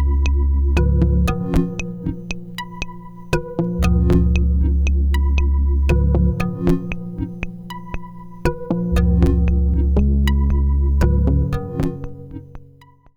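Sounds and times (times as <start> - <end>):
ARP 2500 synthesizer: 0.0 - 13.1.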